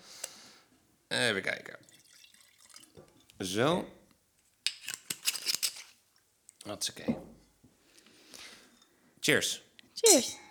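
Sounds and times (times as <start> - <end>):
speech: 1.2 - 1.9, 3.4 - 4.0, 6.6 - 7.3, 9.2 - 10.4
drink pouring into a glass: 1.8 - 3.1.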